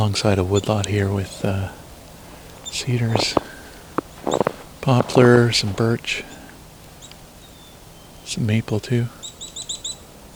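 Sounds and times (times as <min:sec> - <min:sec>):
speech: 0:00.0 - 0:01.8, 0:02.7 - 0:03.5, 0:04.2 - 0:06.4, 0:08.3 - 0:09.2
black-capped chickadee whistled song: 0:06.2 - 0:08.4, 0:09.2 - 0:10.3.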